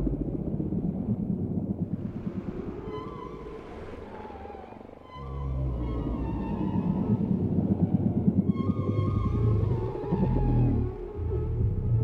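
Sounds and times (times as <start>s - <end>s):
whale song: 0.0s - 12.0s.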